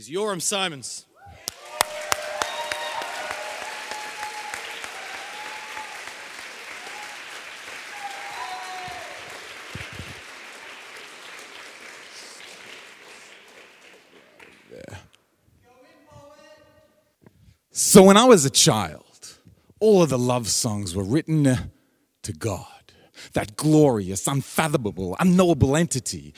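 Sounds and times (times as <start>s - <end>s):
speech: 0.0s - 1.1s, 18.0s - 19.1s, 19.8s - 26.3s
audience cheers: 1.2s - 10.8s
audience applause: 1.4s - 14.9s.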